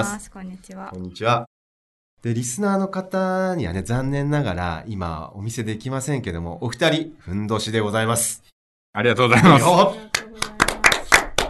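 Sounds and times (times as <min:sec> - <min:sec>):
speech: 0:00.0 - 0:01.5, 0:02.2 - 0:10.5
people clapping: 0:09.9 - 0:11.4.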